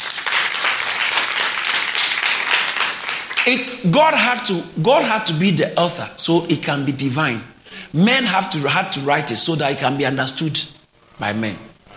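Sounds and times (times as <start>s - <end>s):
audience clapping: 0.0s - 3.8s
speech: 3.4s - 11.7s.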